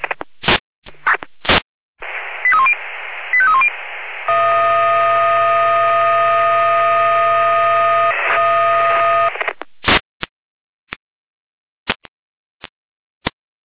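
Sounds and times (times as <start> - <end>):
fire brigade radio clicks and squelch bursts: 0.0 - 3.7, 7.8 - 10.0
fire brigade radio alerting tones: 2.0 - 9.5
fire brigade radio long steady multi-tone alarm chord: 4.3 - 9.3.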